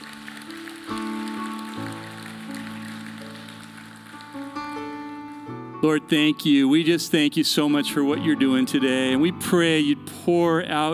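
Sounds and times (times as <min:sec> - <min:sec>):
crowd applause: 0:00.0 - 0:05.2
sustained keyboard chords: 0:00.0 - 0:10.9
speech: 0:05.8 - 0:10.9.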